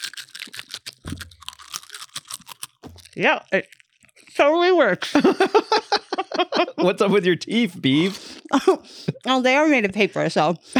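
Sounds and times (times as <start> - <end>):
crunching Funyuns onion-ring snack: 0.0 - 5.1, 7.6 - 9.4
speech: 3.2 - 3.8, 4.4 - 10.7
laughter: 5.0 - 9.4.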